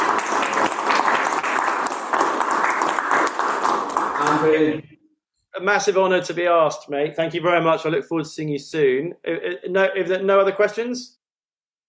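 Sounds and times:
audience applause: 0:00.0 - 0:04.8
speech: 0:04.4 - 0:04.9, 0:05.6 - 0:11.2.

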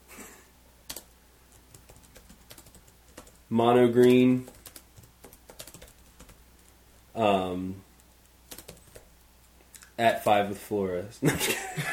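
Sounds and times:
typing on a computer keyboard: 0:00.9 - 0:03.4, 0:04.0 - 0:06.8, 0:08.5 - 0:09.1
speech: 0:03.5 - 0:04.5, 0:07.2 - 0:07.8, 0:10.0 - 0:11.9.

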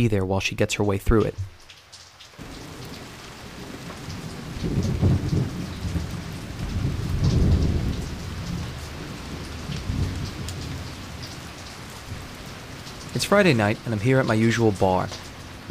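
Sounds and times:
speech: 0:00.0 - 0:01.6, 0:13.3 - 0:15.6
heavy rain outside a bar in South Florida: 0:00.7 - 0:15.6.

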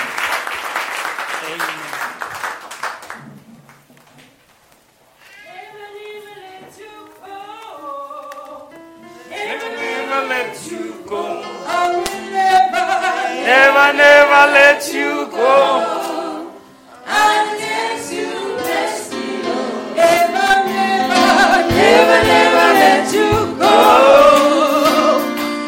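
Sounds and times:
audience round of applause: 0:00.0 - 0:03.9
voices singing a hymn: 0:05.6 - 0:25.6.

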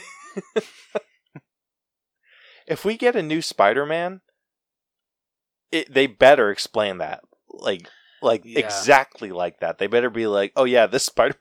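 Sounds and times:
laughter: 0:00.0 - 0:01.0, 0:08.3 - 0:09.0
speech: 0:00.4 - 0:01.0, 0:02.7 - 0:04.3, 0:05.7 - 0:11.3
person coughing: 0:08.6 - 0:08.9.

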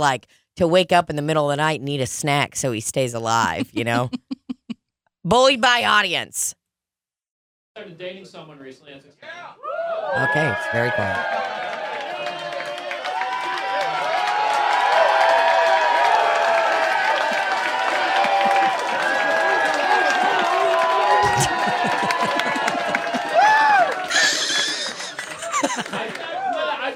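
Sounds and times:
speech: 0:00.0 - 0:04.4, 0:05.2 - 0:06.6, 0:07.8 - 0:11.7, 0:25.7 - 0:26.3
audience clapping in a standing ovation: 0:10.2 - 0:26.9
audience laughter: 0:18.0 - 0:26.9.

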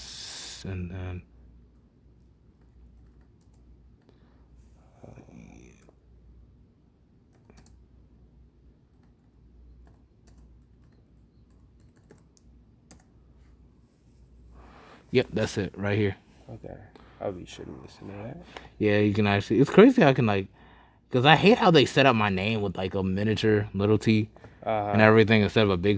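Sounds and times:
speech: 0:00.6 - 0:01.4, 0:15.1 - 0:25.9
computer keyboard typing: 0:02.6 - 0:04.0, 0:07.3 - 0:07.8, 0:08.9 - 0:13.2.

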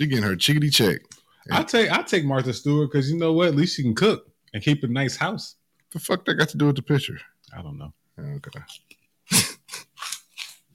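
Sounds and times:
speech: 0:00.0 - 0:09.5
chewing crunchy chips: 0:08.7 - 0:10.7.

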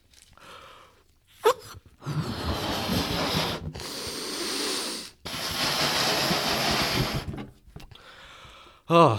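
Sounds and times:
squeaky rubbery balloon stretch: 0:01.4 - 0:04.6, 0:05.2 - 0:07.6
blowing up balloons: 0:01.4 - 0:07.5.

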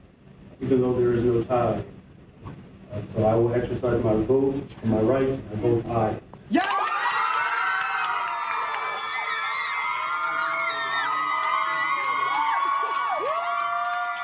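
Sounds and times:
speech: 0:00.6 - 0:01.9, 0:03.0 - 0:06.8
crowd cheering in played video: 0:06.5 - 0:14.2.

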